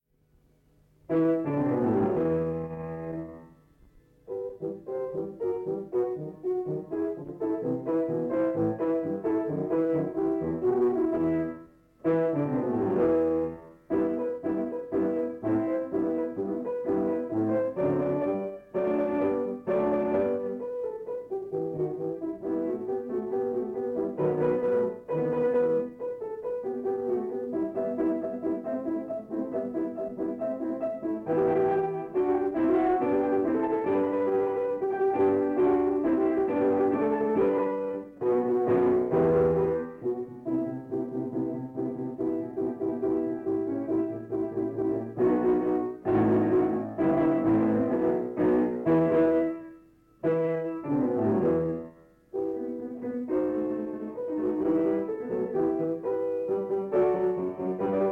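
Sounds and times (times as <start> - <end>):
piano: 0.0 - 58.0.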